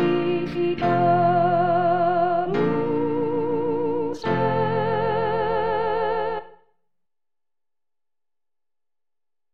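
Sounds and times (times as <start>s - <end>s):
soprano singing: 0.0s - 6.6s.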